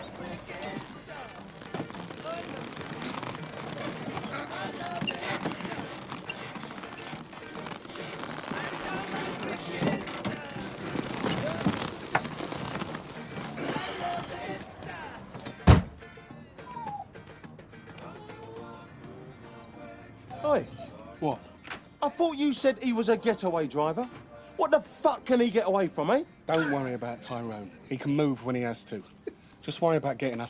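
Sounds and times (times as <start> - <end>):
heavy man climbing out of a car, shuffling and creaking: 0.0 - 15.5
car door slamming: 15.6 - 16.0
speech: 22.2 - 30.4.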